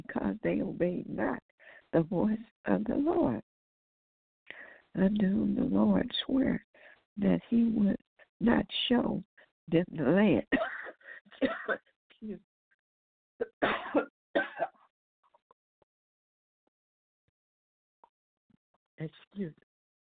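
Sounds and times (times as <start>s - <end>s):
speech: 0.3s - 3.5s, 5.0s - 12.5s, 13.4s - 14.6s, 19.0s - 19.6s
coughing and throat clearing after choking while reading scripture aloud: 10.5s - 11.8s, 13.4s - 14.8s.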